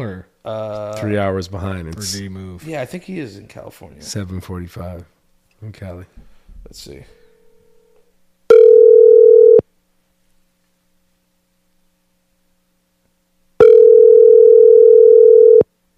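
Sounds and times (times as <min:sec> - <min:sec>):
speech: 0:00.0 - 0:07.2
ringback tone of an outgoing phone call: 0:08.5 - 0:09.6, 0:13.6 - 0:15.6.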